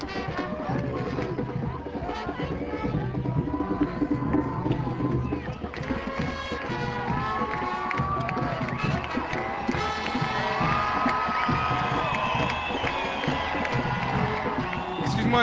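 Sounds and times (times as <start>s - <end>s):
crowd cheering and shouting: 0.0s - 15.4s
people clapping: 4.1s - 15.4s.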